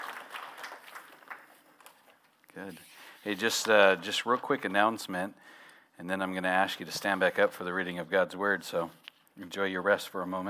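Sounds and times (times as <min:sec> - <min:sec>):
crowd clapping: 0:00.0 - 0:02.1
speech: 0:02.6 - 0:10.4.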